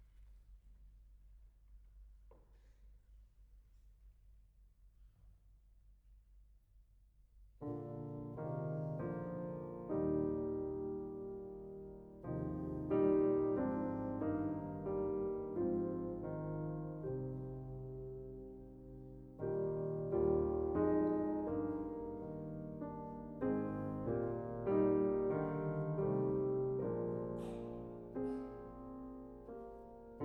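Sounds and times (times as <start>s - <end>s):
British Isles folk songs on piano: 7.6s - 30.2s.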